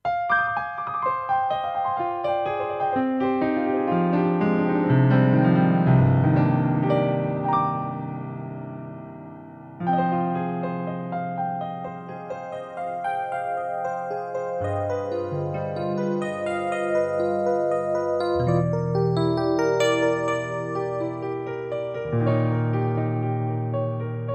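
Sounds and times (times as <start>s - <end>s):
CFX and FM electric piano: 0.0s - 24.3s.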